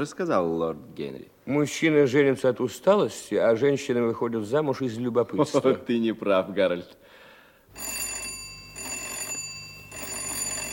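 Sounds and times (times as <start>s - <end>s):
speech: 0.0s - 7.2s
insistent electric doorbell ringing: 7.7s - 10.7s.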